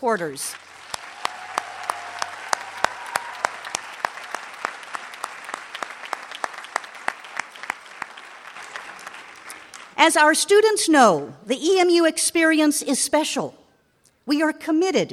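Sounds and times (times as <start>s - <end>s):
speech: 0.0s - 0.8s, 10.0s - 13.6s, 14.3s - 15.1s
audience applause: 0.5s - 10.0s.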